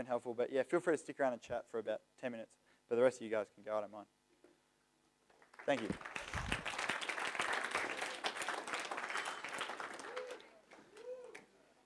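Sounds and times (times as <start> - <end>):
speech: 0.0 - 4.2, 5.6 - 6.2
audience clapping: 5.3 - 11.5.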